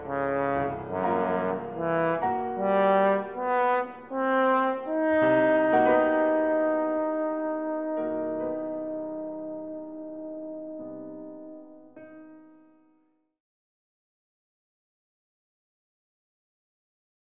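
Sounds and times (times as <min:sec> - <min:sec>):
trombone: 0:00.0 - 0:12.0.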